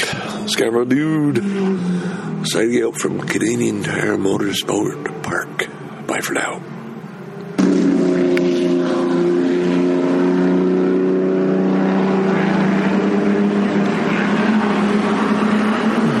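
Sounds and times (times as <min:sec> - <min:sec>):
Merlin Mark 6 racing car driving past at Canadian Tire Motorsport Park: 0:00.0 - 0:16.1
speech: 0:00.5 - 0:06.8.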